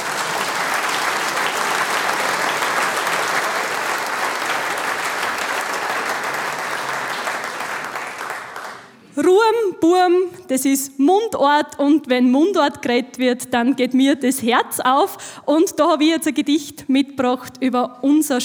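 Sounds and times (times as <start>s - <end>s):
big audience applause: 0.0s - 9.1s
speech: 9.8s - 18.4s.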